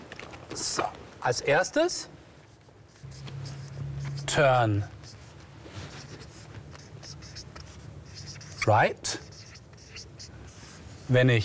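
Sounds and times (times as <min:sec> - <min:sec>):
speech: 0:00.6 - 0:02.2, 0:04.4 - 0:05.0, 0:08.7 - 0:09.2, 0:11.1 - 0:11.4
pen writing notes quickly in the margin of a page: 0:02.9 - 0:11.1.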